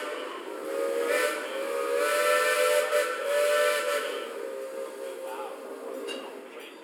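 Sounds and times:
railroad train whistle: 0.0s - 5.3s.

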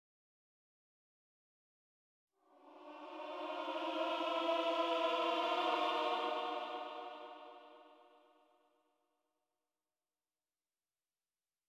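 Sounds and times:
choir singing: 2.4s - 8.3s.

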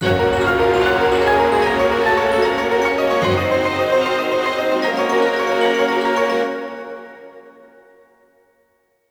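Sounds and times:
jingle: 0.0s - 7.4s.

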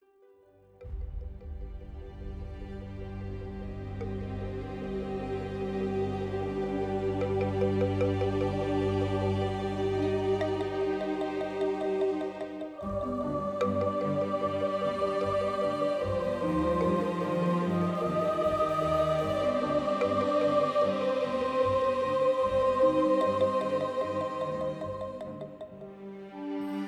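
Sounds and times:
town music: 0.8s - 26.8s.

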